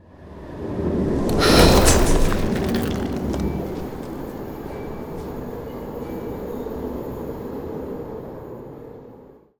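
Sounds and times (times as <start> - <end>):
ice spell cold whooshes: 0.8 - 5.9.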